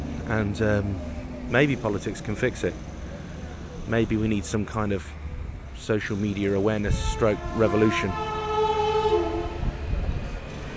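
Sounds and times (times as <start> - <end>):
passenger train wheels and carriages rumbling past: 0.0 - 10.7
speech: 0.3 - 2.9, 3.9 - 5.2, 5.8 - 8.4
passenger train horn: 6.8 - 10.4.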